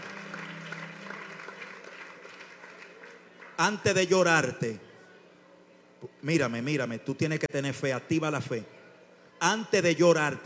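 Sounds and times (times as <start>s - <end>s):
audience applause: 0.0s - 3.9s
speech: 3.6s - 4.8s, 6.0s - 8.8s, 9.4s - 10.4s.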